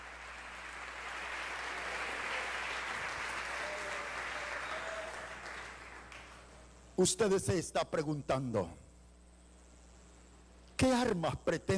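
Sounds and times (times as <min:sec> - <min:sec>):
audience applause: 0:00.0 - 0:06.5
speech: 0:07.0 - 0:08.8, 0:11.1 - 0:11.7.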